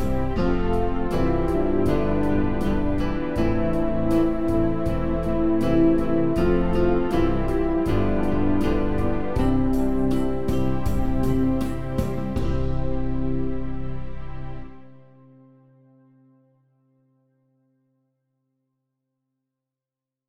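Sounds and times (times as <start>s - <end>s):
backing music: 0.0s - 15.3s.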